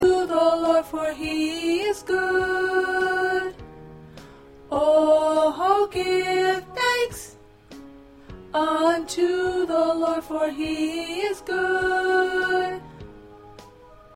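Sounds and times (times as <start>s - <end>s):
alto choir part singing: 0.0s - 3.6s, 4.7s - 7.3s, 8.5s - 12.9s.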